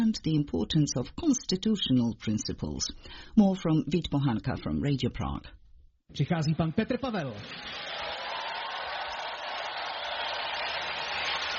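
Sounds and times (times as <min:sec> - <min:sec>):
speech: 0:00.1 - 0:08.0
long applause greeting a speaker: 0:07.4 - 0:11.5.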